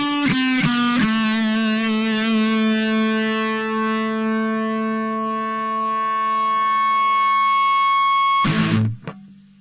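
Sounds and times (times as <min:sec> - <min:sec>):
smooth fuzz: 0:00.0 - 0:09.5.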